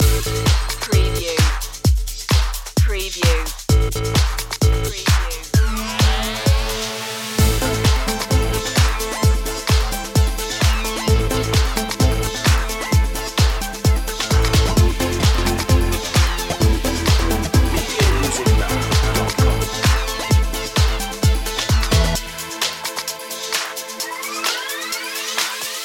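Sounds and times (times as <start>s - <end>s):
music loop: 0.0s - 25.8s.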